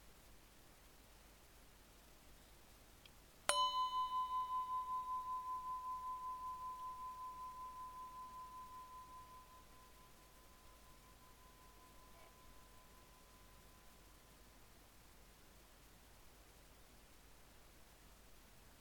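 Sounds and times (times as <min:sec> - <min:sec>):
ganta bell ringing: 0:03.5 - 0:13.6.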